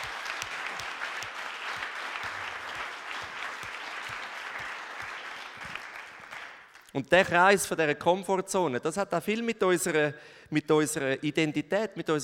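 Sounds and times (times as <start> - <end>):
audience clapping: 0.0 - 7.0
speech: 7.0 - 12.2.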